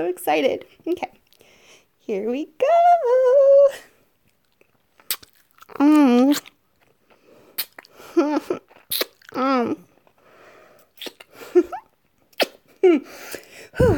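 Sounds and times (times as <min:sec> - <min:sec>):
speech: 0:00.0 - 0:01.2, 0:02.1 - 0:03.9, 0:05.7 - 0:06.5, 0:08.2 - 0:09.9, 0:12.8 - 0:13.9
messy wet kiss smacking: 0:05.0 - 0:06.5, 0:07.6 - 0:07.8, 0:08.9 - 0:09.2, 0:10.9 - 0:11.3, 0:12.3 - 0:12.6.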